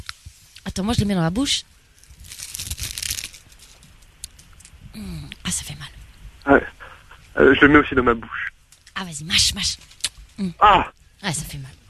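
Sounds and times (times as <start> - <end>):
speech: 0.8 - 1.7, 7.4 - 8.5, 9.2 - 11.8
dry leaf being crumpled into a ball: 1.9 - 4.7.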